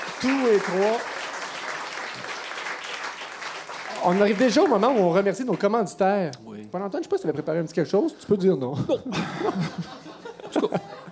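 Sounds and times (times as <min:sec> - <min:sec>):
audience applause: 0:00.0 - 0:05.7
speech: 0:00.2 - 0:01.1, 0:04.0 - 0:10.9
laughter: 0:08.6 - 0:11.1.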